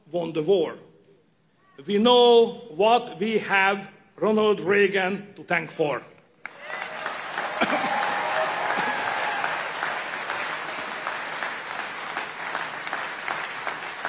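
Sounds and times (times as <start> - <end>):
speech: 0.1 - 0.9, 1.8 - 6.1
conference audience applause at CPAC: 6.4 - 14.0.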